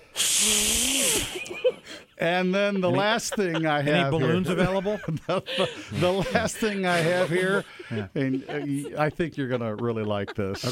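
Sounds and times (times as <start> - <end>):
air blown into clenched fist: 0.1 - 1.5
speech: 1.7 - 10.7
laughter: 2.6 - 10.7.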